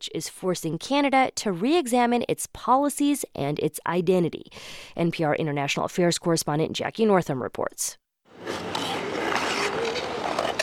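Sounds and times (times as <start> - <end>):
speech: 0.0 - 8.6
ice skaters skating on an outdoor rink in front of Ottawa City Hall: 8.3 - 10.6.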